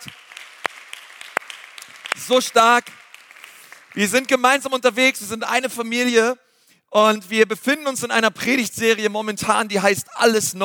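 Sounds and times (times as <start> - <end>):
audience applause: 0.0 - 4.4
speech: 2.2 - 3.0, 4.0 - 10.6.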